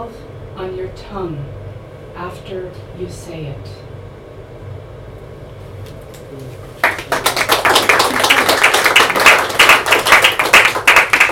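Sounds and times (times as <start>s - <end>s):
speech: 0.0s - 3.9s, 6.4s - 6.7s
audience clapping: 6.1s - 11.3s.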